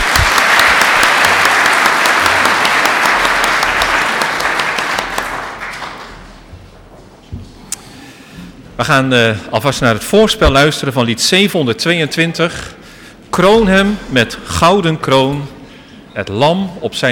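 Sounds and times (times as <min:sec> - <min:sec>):
applause: 0:00.0 - 0:06.4
speech: 0:08.8 - 0:12.8, 0:13.4 - 0:15.6, 0:16.2 - 0:17.1.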